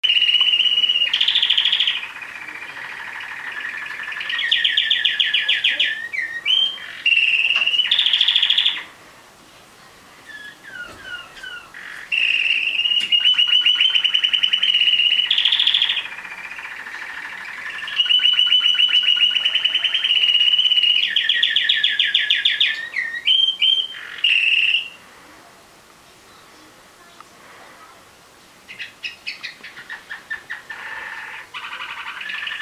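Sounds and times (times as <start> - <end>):
canary singing: 0.0 - 8.9, 10.2 - 25.0, 28.6 - 32.6.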